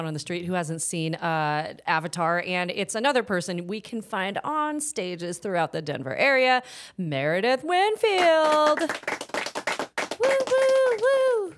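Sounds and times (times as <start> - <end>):
speech: 0.0 - 9.2
quick sharp claps: 8.2 - 11.2
person cheering with a high-pitched whoop: 10.1 - 11.5.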